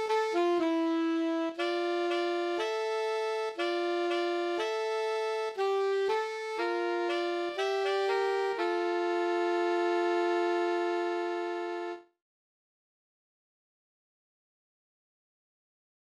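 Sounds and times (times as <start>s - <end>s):
oboe duet: 0.0s - 12.1s.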